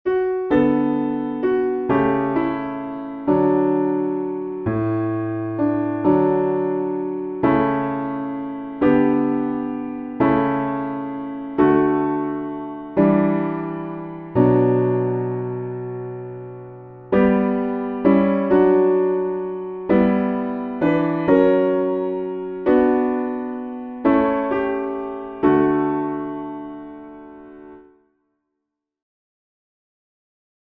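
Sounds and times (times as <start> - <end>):
piano backing: 0.1 - 28.0.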